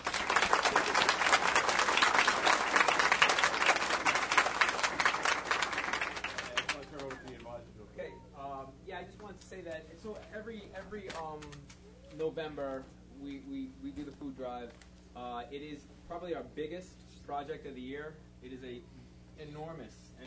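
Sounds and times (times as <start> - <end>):
audience applause: 0.0 - 7.4
speech: 9.4 - 20.2.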